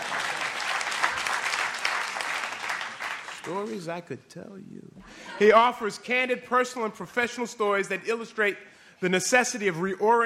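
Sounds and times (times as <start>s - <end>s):
audience applause: 0.0s - 3.8s
speech: 3.4s - 10.2s.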